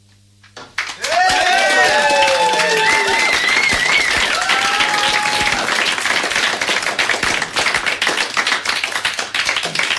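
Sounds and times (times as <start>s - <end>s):
audience: 0.8s - 9.9s.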